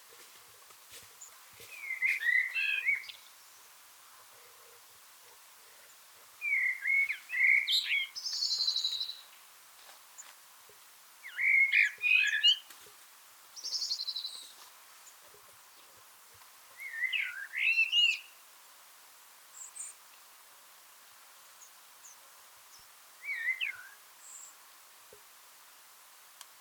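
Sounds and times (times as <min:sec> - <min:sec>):
common blackbird singing: 0:01.7 - 0:03.3, 0:06.4 - 0:09.3, 0:11.2 - 0:12.7, 0:13.6 - 0:14.5, 0:16.8 - 0:18.3, 0:23.2 - 0:24.5.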